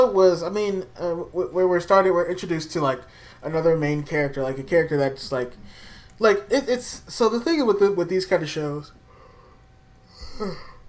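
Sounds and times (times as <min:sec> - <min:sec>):
speech: 0:00.0 - 0:09.0, 0:10.4 - 0:10.7
person yawning: 0:10.1 - 0:10.8.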